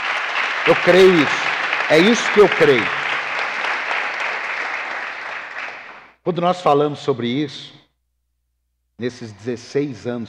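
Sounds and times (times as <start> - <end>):
audience applause: 0.0 - 6.1
speech: 0.7 - 3.0, 6.3 - 7.8, 9.0 - 10.2.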